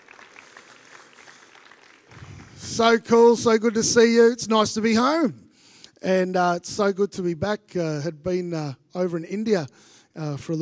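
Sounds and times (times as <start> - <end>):
applause for a church worship team: 0.0 - 3.6
speech: 2.8 - 5.4, 6.0 - 10.5.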